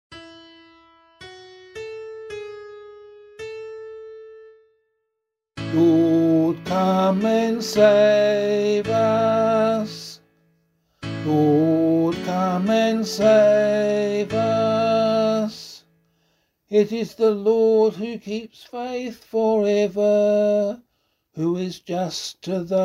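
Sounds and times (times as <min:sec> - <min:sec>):
vocal psalm singing: 0:05.6 - 0:10.3, 0:11.1 - 0:15.9, 0:16.7 - 0:22.8.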